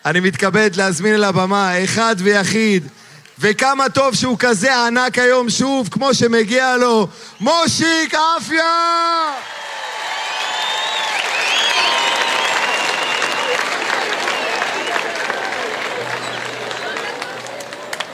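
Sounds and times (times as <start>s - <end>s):
speech: 0.0s - 9.6s
audience applause: 9.3s - 18.1s.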